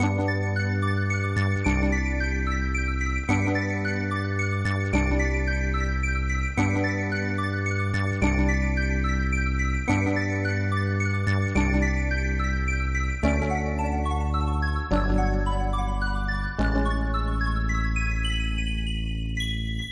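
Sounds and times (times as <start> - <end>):
slow dreamy drifting theme music loop: 0.0 - 19.9.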